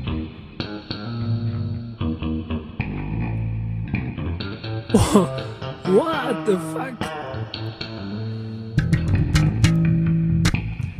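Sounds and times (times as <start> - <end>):
plucked bass guitar with reverb effect: 0.0 - 10.9
speech: 4.9 - 7.1
person exclaiming: 5.0 - 7.1.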